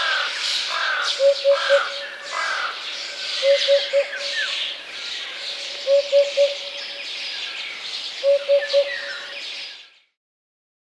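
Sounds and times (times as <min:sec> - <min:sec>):
Eurasian hoopoe calling: 0:00.0 - 0:02.7, 0:03.4 - 0:04.6, 0:05.8 - 0:07.0, 0:08.2 - 0:09.4
speech: 0:01.2 - 0:02.0, 0:03.4 - 0:04.4, 0:05.8 - 0:06.7, 0:08.2 - 0:09.2.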